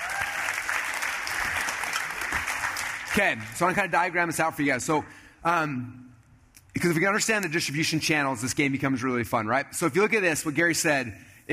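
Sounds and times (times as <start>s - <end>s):
audience round of applause: 0.0s - 3.6s
speech: 3.2s - 6.0s, 6.8s - 11.5s.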